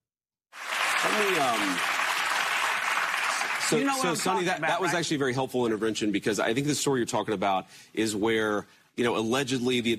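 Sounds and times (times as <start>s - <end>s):
audience clapping: 0.5s - 5.0s
speech: 1.0s - 1.9s, 3.7s - 9.9s.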